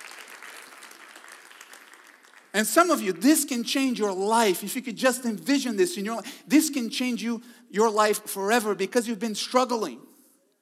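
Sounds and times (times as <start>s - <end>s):
audience clapping: 0.0s - 3.0s
speech: 2.6s - 10.1s.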